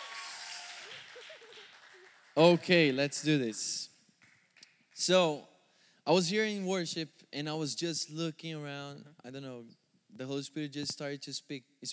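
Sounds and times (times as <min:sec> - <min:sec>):
audience applause: 0:00.0 - 0:05.0
speech: 0:01.2 - 0:03.9, 0:05.0 - 0:05.5, 0:06.1 - 0:11.9.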